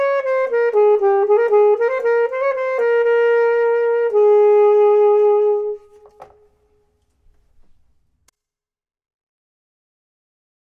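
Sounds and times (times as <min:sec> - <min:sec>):
saxophone: 0:00.0 - 0:06.6
clarinet: 0:00.0 - 0:06.8.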